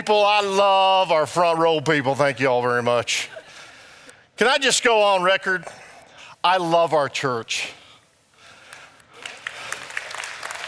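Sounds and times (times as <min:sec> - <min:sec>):
speech: 0:00.0 - 0:03.4, 0:04.4 - 0:05.8, 0:06.4 - 0:07.8
audience clapping: 0:08.6 - 0:10.6.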